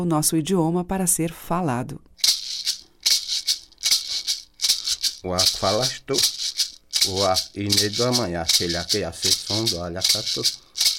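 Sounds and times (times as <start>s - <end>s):
speech: 0.0s - 2.1s, 5.2s - 6.4s, 7.0s - 10.9s
traditional percussion rattle shaken: 2.2s - 10.9s.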